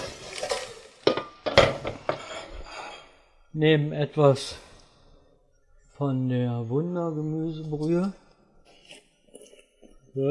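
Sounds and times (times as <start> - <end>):
pot of water set on stove: 0.0 - 2.7
speech: 3.6 - 4.6, 6.0 - 8.2.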